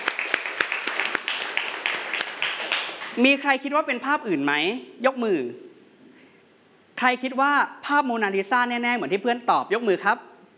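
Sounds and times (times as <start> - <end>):
classroom students applauding: 0.0 - 3.2
speech: 3.2 - 5.6, 7.0 - 10.3.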